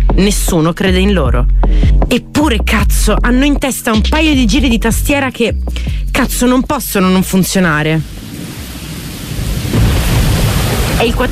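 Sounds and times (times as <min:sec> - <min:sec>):
speech: 0:00.2 - 0:08.2, 0:11.0 - 0:11.3
thunder in London: 0:07.6 - 0:11.3
rain on a wet September day in London: 0:08.0 - 0:11.3.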